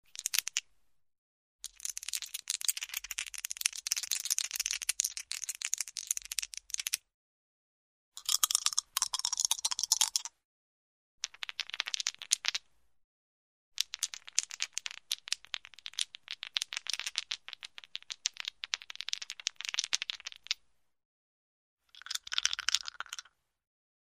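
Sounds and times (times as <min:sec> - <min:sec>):
gaming dice shaking: 0:00.1 - 0:00.6, 0:01.7 - 0:07.0, 0:08.2 - 0:10.3, 0:11.2 - 0:12.7, 0:13.8 - 0:20.6, 0:21.9 - 0:23.4.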